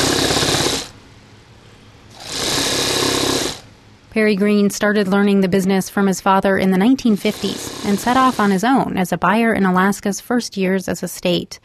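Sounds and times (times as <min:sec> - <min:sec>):
old sewing machines stitching fur coats: 0:00.0 - 0:00.9, 0:02.1 - 0:03.7, 0:07.2 - 0:08.8
speech: 0:04.2 - 0:11.6.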